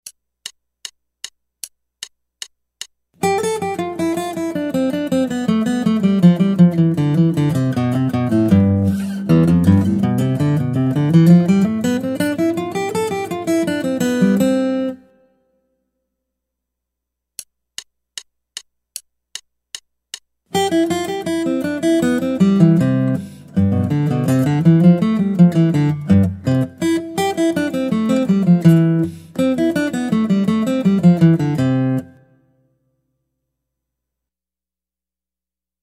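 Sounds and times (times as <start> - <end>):
guitar: 3.2 - 15.3, 20.5 - 32.7.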